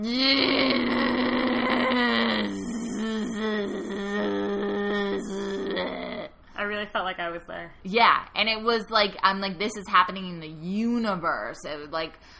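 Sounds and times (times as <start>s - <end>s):
speech: 0.0s - 2.6s, 7.0s - 12.3s
voice imitating a crazy buzzing noise: 0.0s - 6.3s.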